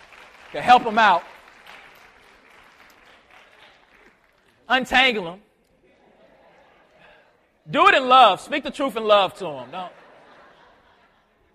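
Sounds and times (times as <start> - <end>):
round of applause: 0.0 - 4.6
speech: 0.5 - 1.3, 4.7 - 5.5, 7.7 - 10.0
laughter: 5.7 - 7.5, 9.4 - 11.5.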